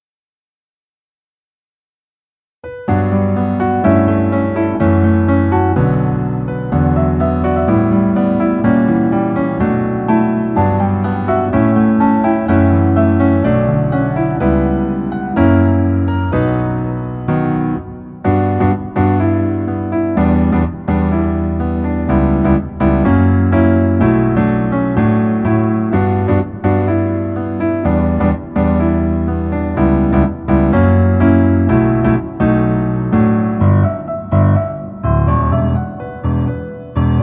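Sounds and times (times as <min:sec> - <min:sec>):
piano melody backing track in male key: 0:02.6 - 0:37.2.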